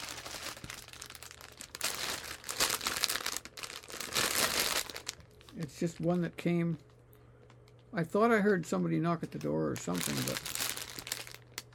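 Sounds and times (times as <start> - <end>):
crisp plastic rustling: 0.0 - 6.4, 9.2 - 11.7
packaging crinkling as a package is unboxed: 0.0 - 6.4, 9.3 - 11.7
speech: 5.6 - 6.9, 7.9 - 10.5.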